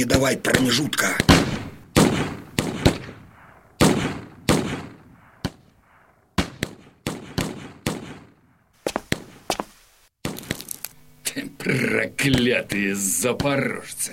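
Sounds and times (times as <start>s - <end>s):
speech: 0.0s - 1.3s, 11.4s - 14.1s
old-fashioned musket gunfire in battle: 1.0s - 8.4s.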